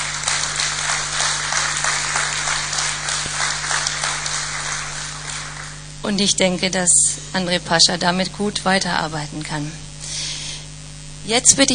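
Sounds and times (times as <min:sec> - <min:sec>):
audience applause: 0:00.0 - 0:05.9
speech: 0:06.0 - 0:09.9, 0:11.2 - 0:11.7.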